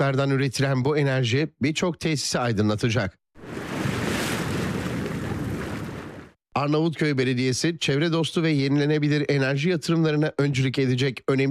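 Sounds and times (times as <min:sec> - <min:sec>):
speech: 0:00.0 - 0:03.2, 0:06.6 - 0:11.4
sea waves at a wave energy plant in Karaburun harbour: 0:03.4 - 0:06.4
wind noise: 0:03.4 - 0:06.4.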